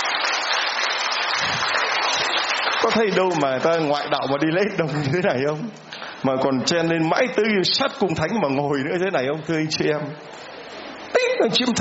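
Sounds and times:
applause at a Mass for churchgoers standing up: 0.0s - 4.3s
speech: 2.1s - 10.5s, 11.2s - 11.7s.

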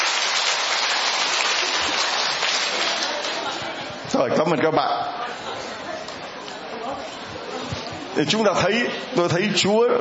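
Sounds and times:
crowd applause: 0.0s - 3.8s
speech: 4.2s - 5.9s, 8.2s - 9.9s.

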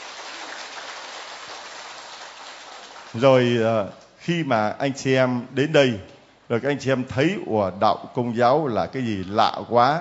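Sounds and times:
crowd clapping: 0.0s - 3.5s
speech: 3.1s - 10.0s.

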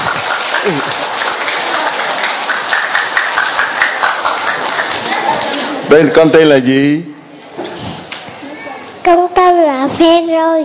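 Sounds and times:
audience applause: 0.0s - 6.0s
speech: 0.7s - 1.1s, 5.9s - 7.1s, 9.9s - 10.6s.

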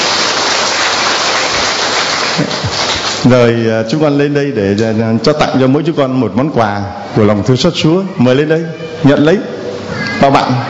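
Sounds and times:
crowd applause: 0.0s - 3.3s
speech: 3.2s - 10.6s.

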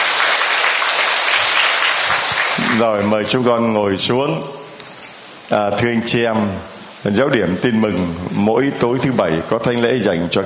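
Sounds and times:
church congregation applauding to welcome a children's choir at Mass: 0.0s - 3.5s
speech: 2.8s - 4.6s, 5.5s - 10.4s.

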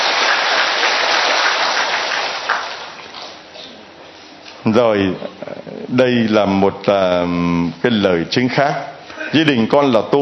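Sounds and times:
crowd applause: 0.0s - 3.0s
speech: 4.7s - 10.2s.

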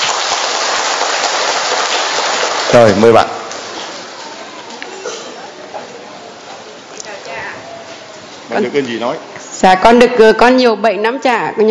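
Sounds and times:
audience applause: 0.0s - 4.4s
speech: 2.7s - 3.4s, 8.6s - 11.6s.

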